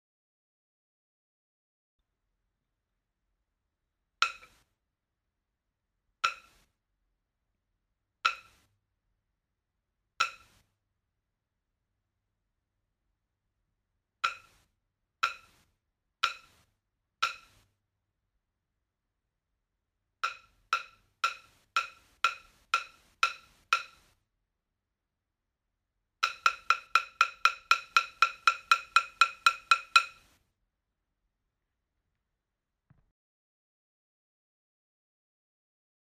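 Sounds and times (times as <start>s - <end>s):
taiko bachi drumsticks: 14.2s - 14.5s, 15.2s - 15.5s, 16.2s - 16.6s, 17.2s - 17.6s, 20.2s - 24.0s, 26.2s - 30.2s.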